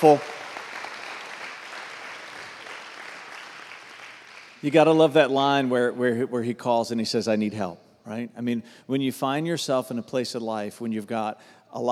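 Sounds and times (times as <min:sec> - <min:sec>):
speech: 0:00.0 - 0:00.3, 0:04.6 - 0:11.8
audience clapping: 0:00.0 - 0:05.1.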